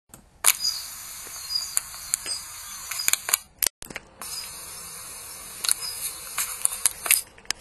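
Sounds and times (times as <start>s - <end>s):
Daurian redstart calling: 0.5s - 3.3s, 4.2s - 6.8s.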